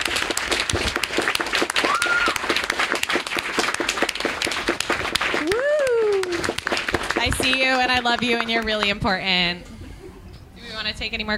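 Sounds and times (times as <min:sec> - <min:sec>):
loud round of applause: 0:00.0 - 0:08.7
speech: 0:07.7 - 0:09.7, 0:10.8 - 0:11.3.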